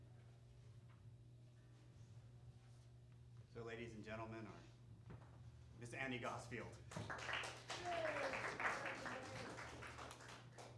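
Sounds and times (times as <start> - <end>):
low steady hum: 0.0 - 10.7
speech: 3.6 - 4.8, 5.8 - 9.4
audience applause: 6.9 - 10.7.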